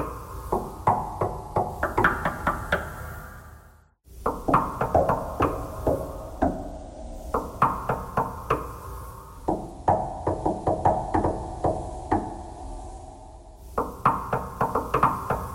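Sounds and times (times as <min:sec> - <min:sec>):
knocking thread noise: 0:00.0 - 0:03.0, 0:04.2 - 0:06.6, 0:07.3 - 0:08.8, 0:09.5 - 0:12.5, 0:13.7 - 0:15.5.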